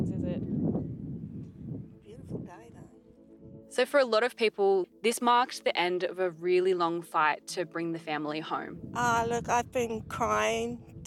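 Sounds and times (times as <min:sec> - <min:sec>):
strong wind gusts: 0:00.0 - 0:03.7, 0:08.6 - 0:11.0
speech: 0:03.7 - 0:11.0.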